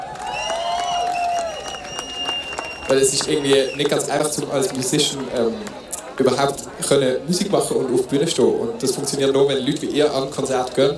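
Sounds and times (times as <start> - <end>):
concert audience applause: 0.0 - 6.3
speech: 2.9 - 10.9.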